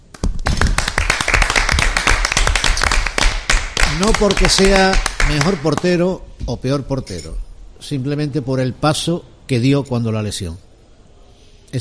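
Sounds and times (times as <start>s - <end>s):
hand clapping: 0.0s - 6.0s
speech: 4.0s - 10.7s.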